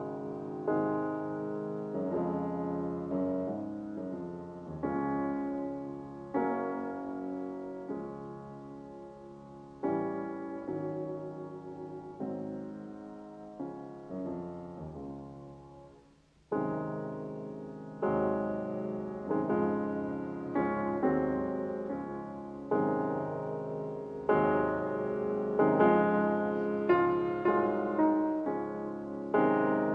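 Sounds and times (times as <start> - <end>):
piano sonata andante con moto: 0.0 - 29.9.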